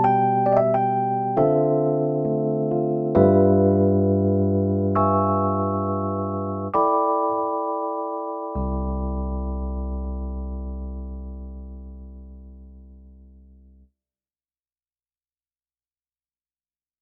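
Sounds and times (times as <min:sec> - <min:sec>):
tremolo electric piano: 0:00.0 - 0:13.9.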